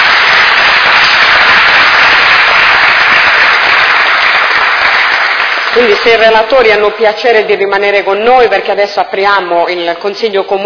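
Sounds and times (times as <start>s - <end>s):
applause: 0.0s - 6.9s
speech: 5.8s - 10.6s.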